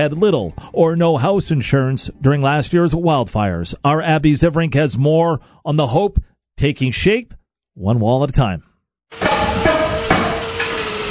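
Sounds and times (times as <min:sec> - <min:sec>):
speech: 0:00.0 - 0:09.7
hammers pounding at a construction site: 0:09.2 - 0:11.1.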